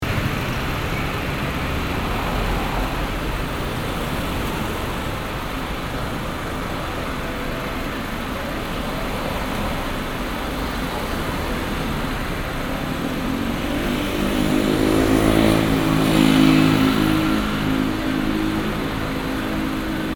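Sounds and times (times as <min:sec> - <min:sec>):
car: 0:00.0 - 0:20.1.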